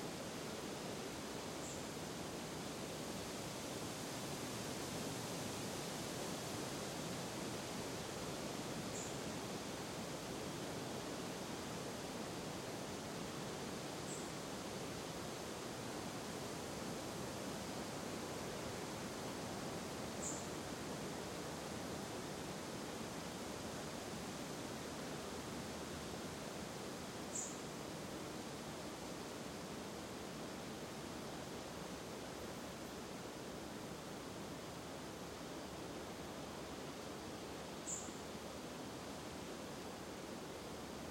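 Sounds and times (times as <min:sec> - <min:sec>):
wind in a forest: 0:00.0 - 0:41.0.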